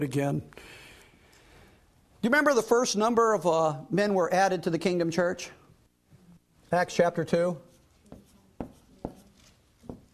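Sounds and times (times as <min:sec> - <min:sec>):
speech: 0:00.0 - 0:00.8, 0:02.2 - 0:05.6, 0:06.7 - 0:07.7
marker or chalk scratching on a board during a Bible lesson: 0:07.7 - 0:10.1.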